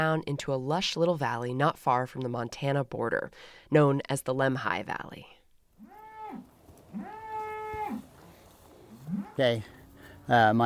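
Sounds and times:
speech: 0.0 - 5.4, 9.2 - 10.6
cows mooing: 5.8 - 10.6.

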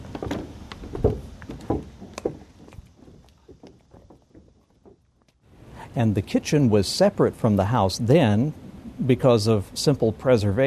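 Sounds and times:
footsteps walking across toward the kitchen of an old house: 0.0 - 5.5
speech: 6.0 - 10.6.

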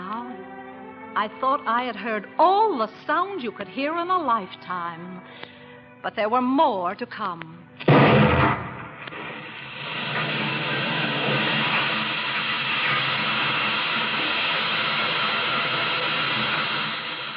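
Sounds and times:
speech: 1.2 - 7.6
heavy blast-like thump from oil drilling: 7.8 - 9.4
oil drilling and pumping machinery roar: 9.0 - 17.3.

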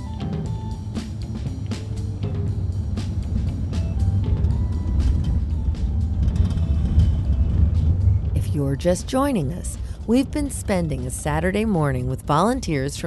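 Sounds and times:
car rolling down a city street: 0.0 - 13.0
faint rattles and clicks: 3.0 - 8.4
speech: 8.6 - 13.0.

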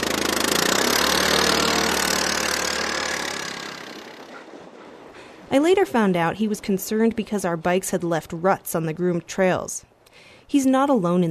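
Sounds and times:
snow grooming machine engine on a Nordic ski trail: 0.0 - 4.5
speech: 5.5 - 11.3.

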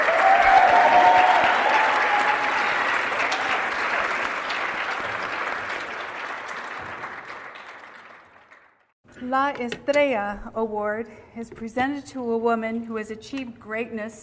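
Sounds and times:
audience applause: 0.0 - 8.9
speech: 9.4 - 14.2.

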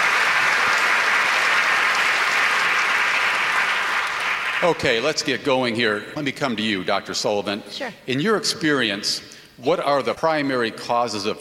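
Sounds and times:
audience applause: 0.0 - 5.2
speech: 4.6 - 11.3.

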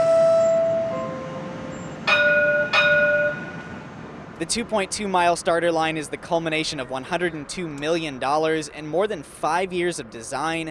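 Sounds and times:
streetcar warning bell dings: 0.0 - 3.8
streetcar rolling in with a low steady hum: 0.0 - 10.6
speech: 4.4 - 10.6.

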